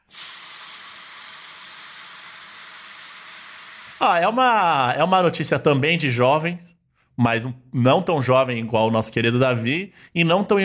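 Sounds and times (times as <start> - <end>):
hamburger sizzling on a griddle: 0.1 - 4.0
speech: 4.0 - 10.6.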